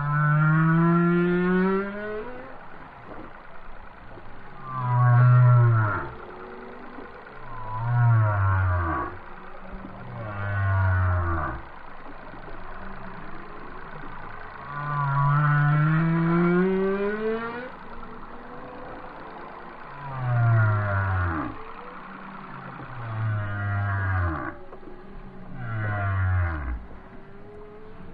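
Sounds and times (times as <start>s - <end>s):
whale song of deep moans and groans: 0.0s - 28.1s.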